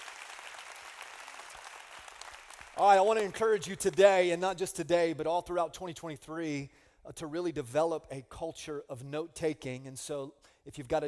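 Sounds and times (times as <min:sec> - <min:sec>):
audience clapping: 0:00.0 - 0:04.1
speech: 0:02.8 - 0:11.0.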